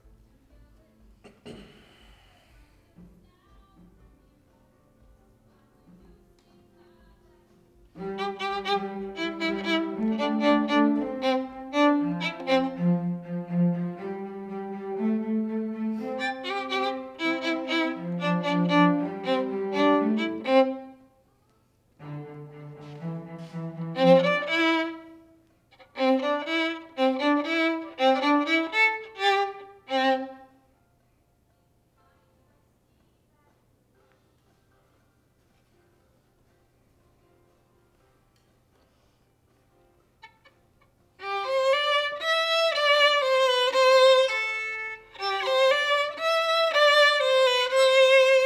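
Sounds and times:
violin: 0:07.8 - 0:21.1, 0:21.9 - 0:30.7, 0:41.2 - 0:48.4.

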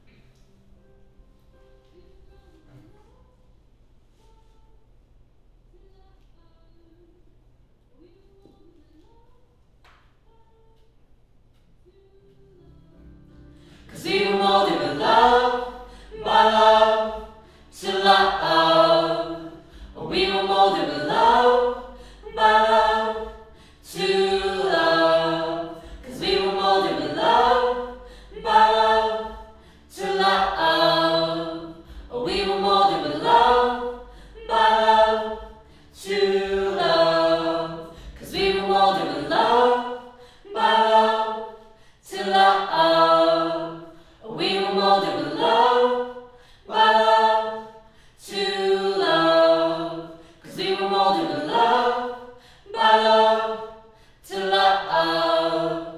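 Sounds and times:
choir singing: 0:13.5 - 0:55.9.

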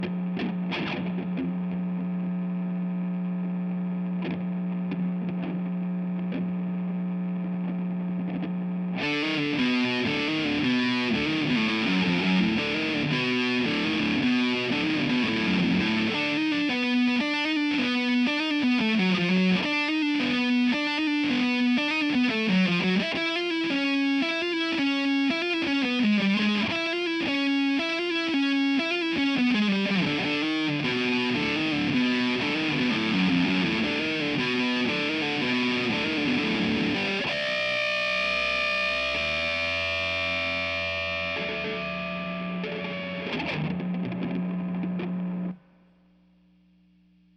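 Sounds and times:
guitar: 0:00.0 - 0:47.3.

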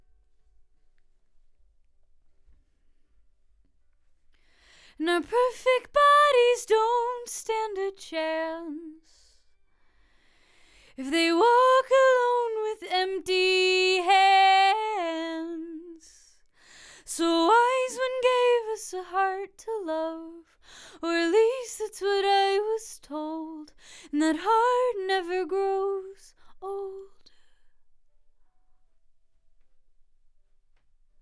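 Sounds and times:
vocals: 0:04.5 - 0:09.5, 0:10.1 - 0:27.7.

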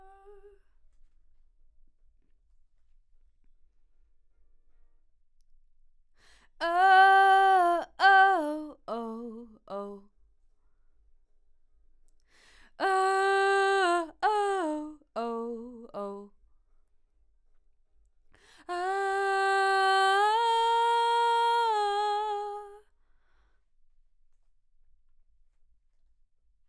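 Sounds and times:
vocal: 0:06.6 - 0:10.0, 0:12.8 - 0:16.3, 0:18.7 - 0:22.8.

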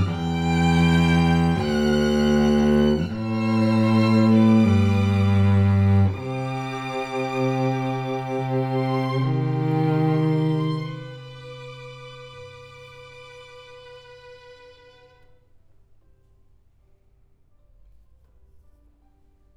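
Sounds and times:
cello: 0:00.0 - 0:15.6.

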